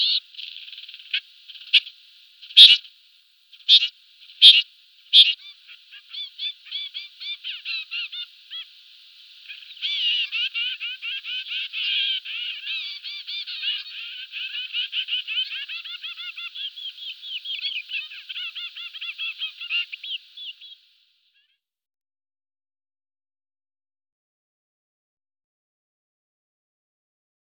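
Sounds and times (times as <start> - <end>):
trumpeter finch calling: 0.0 - 2.9, 3.6 - 20.8.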